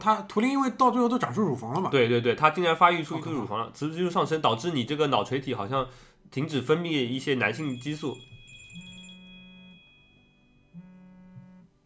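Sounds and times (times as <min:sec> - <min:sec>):
speech: 0:00.0 - 0:08.8
phone ringing with buzzing electronic bursts: 0:07.5 - 0:11.7.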